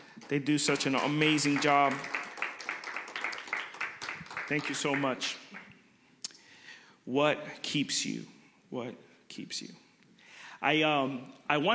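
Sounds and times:
audience applause for worship team: 0.0 - 5.7
speech: 0.3 - 2.2, 4.5 - 5.5, 7.1 - 9.8, 10.6 - 11.7.

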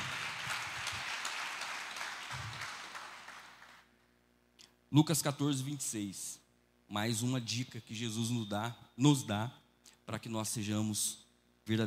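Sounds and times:
audience applause: 0.0 - 3.8
speech: 4.9 - 11.8.

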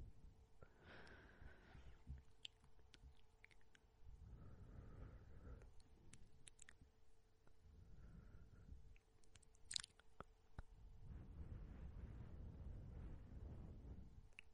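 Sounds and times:
faint steady hum: 0.0 - 14.5
soft blowing breaths: 0.6 - 2.3, 4.1 - 6.1, 7.5 - 8.9, 10.6 - 14.5
wet mouth clicks and saliva smacks: 2.2 - 3.9, 5.6 - 6.8, 8.9 - 10.7.

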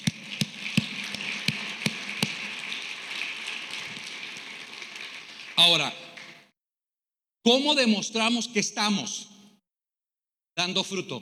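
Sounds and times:
audience applauding: 0.0 - 6.5
speech: 5.6 - 6.0, 7.4 - 9.3, 10.6 - 11.2.

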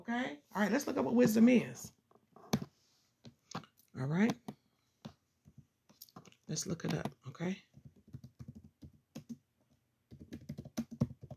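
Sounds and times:
speech: 0.0 - 2.0, 4.0 - 4.5, 6.5 - 7.7
typing on a computer keyboard: 6.8 - 9.4, 10.1 - 11.3.

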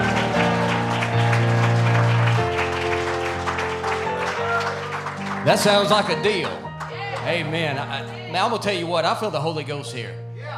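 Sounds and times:
audience applauding: 0.0 - 8.2
speech: 5.5 - 6.6, 7.3 - 10.2.

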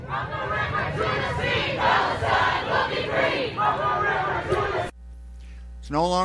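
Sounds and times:
protest crowd chanting: 0.0 - 5.0
speech: 5.9 - 6.2.

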